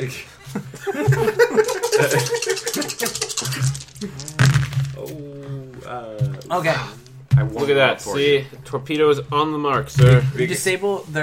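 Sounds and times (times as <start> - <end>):
speech: 0.0 - 3.7, 5.9 - 7.0, 7.6 - 11.2
people chuckling: 0.4 - 4.5
dice clattering and tumbling across a table: 1.7 - 5.0.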